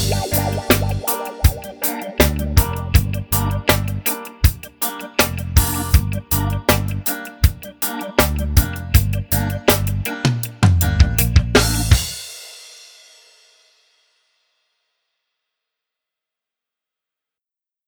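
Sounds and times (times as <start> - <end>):
reggae drums: 0.0 - 13.4.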